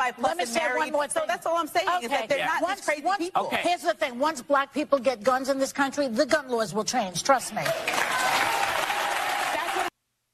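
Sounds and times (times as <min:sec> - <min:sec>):
speech: 0:00.1 - 0:08.4
crowd cheering and applauding: 0:07.6 - 0:09.9.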